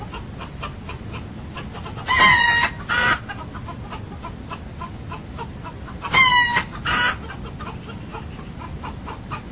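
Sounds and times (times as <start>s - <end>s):
roosters crowing: 1.6s - 4.0s, 6.0s - 7.3s.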